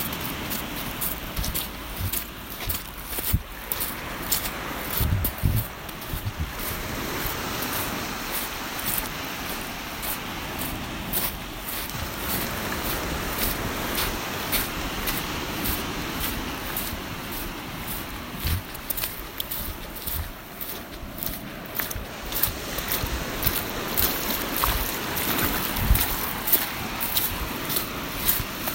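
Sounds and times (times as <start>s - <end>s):
footsteps crunching along a beach shore: 0.0s - 28.7s
low rumbling wash: 0.0s - 28.7s.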